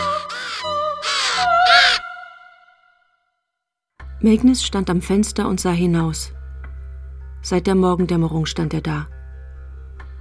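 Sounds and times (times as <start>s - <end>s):
ravens cawing: 0.0s - 2.8s
speech: 4.2s - 6.4s, 7.4s - 9.2s.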